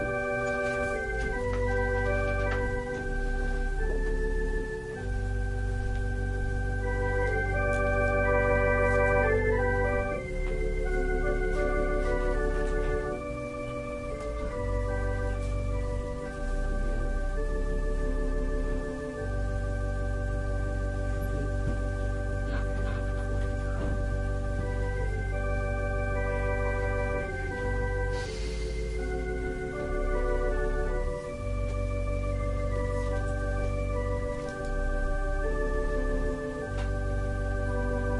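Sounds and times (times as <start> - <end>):
organ: 0.0 - 38.1
piano: 0.0 - 38.1.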